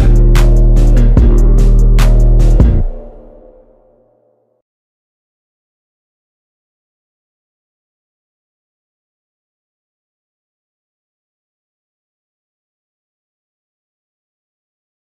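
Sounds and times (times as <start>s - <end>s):
instrumental music: 0.0s - 4.4s.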